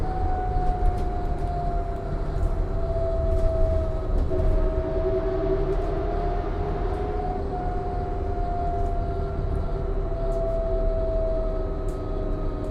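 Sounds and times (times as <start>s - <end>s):
modern transit bus ride: 0.0s - 12.6s.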